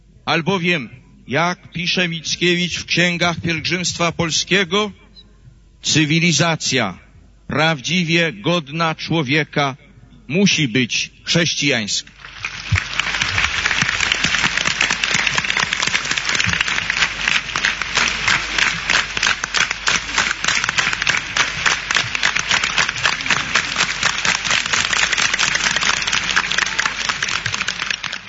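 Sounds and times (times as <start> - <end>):
speech: 0.3 - 5.0, 5.8 - 12.9
audience applause: 12.1 - 28.2.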